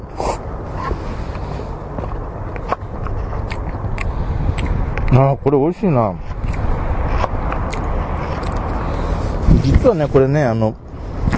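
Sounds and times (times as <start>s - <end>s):
low rumble: 0.0s - 11.3s
person eating cup noodles: 2.6s - 4.8s, 6.3s - 9.5s
speech: 5.1s - 6.3s, 9.6s - 10.8s.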